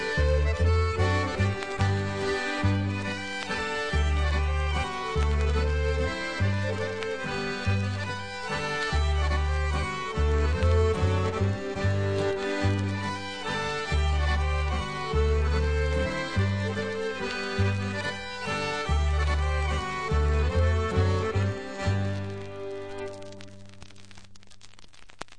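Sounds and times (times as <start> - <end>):
masurka dance music: 0.0 - 23.9.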